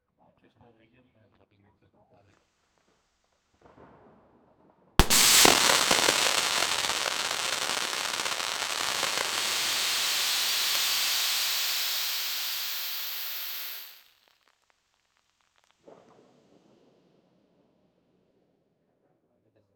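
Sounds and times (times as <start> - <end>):
fuse being lit: 5.0 - 14.1
fireworks: 5.0 - 14.6.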